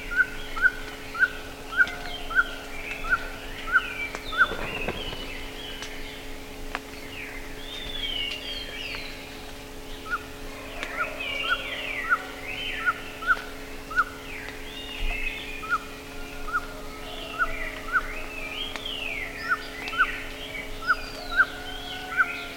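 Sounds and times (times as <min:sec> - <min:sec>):
warbling birds chorus: 0:00.0 - 0:22.5
low hum: 0:04.1 - 0:06.8.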